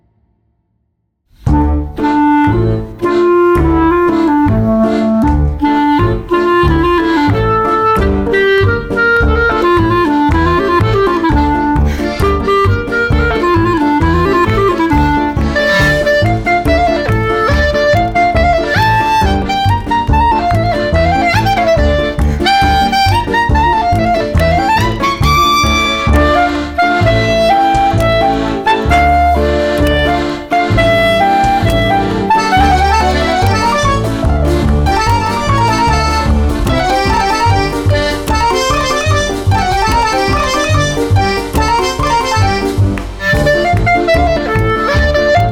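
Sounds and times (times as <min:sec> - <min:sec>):
klezmer style music: 0:01.4 - 0:45.4.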